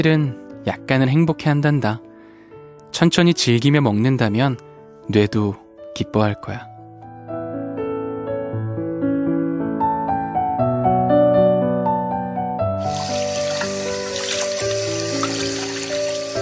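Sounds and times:
speech: 0:00.0 - 0:02.1, 0:02.9 - 0:06.7
gentle melodic music: 0:00.0 - 0:16.4
washing dishes under running tap water: 0:12.8 - 0:16.4.

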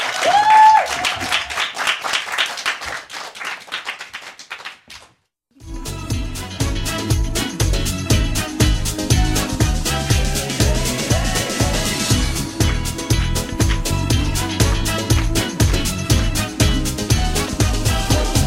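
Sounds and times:
crowd applauding: 0:00.0 - 0:05.1, 0:13.6 - 0:16.0
full band's music with bass and drums: 0:05.8 - 0:18.4.

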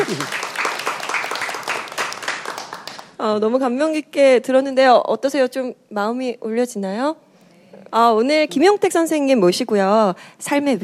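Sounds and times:
audience applause: 0:00.0 - 0:03.1
speech: 0:03.2 - 0:07.2, 0:07.8 - 0:10.8.

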